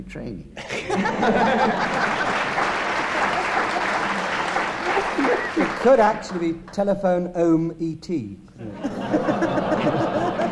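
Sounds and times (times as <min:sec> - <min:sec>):
speech: 0:00.0 - 0:02.2, 0:05.1 - 0:10.1
laughter: 0:00.6 - 0:06.3, 0:08.6 - 0:10.4
audience applause: 0:01.0 - 0:06.5.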